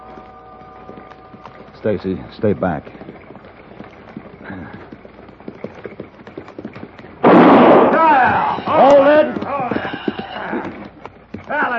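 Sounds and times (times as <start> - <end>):
horse-drawn buckboard hooves clip-clopping on a trail: 0.0 - 11.7
speech: 1.8 - 3.2
gunshot fired into the air: 7.2 - 8.4.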